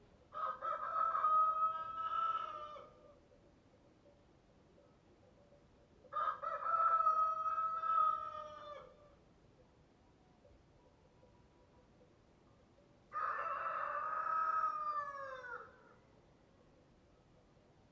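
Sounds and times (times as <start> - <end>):
rooster crowing cock-a-doodle-doo: 0.3 - 3.0, 6.1 - 9.0, 13.1 - 16.0.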